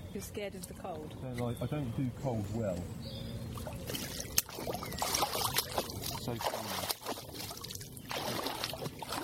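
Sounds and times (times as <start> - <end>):
speech: 0.2 - 5.1, 6.3 - 6.8
water splashing and sloshing during a cold-water swim: 3.5 - 9.2.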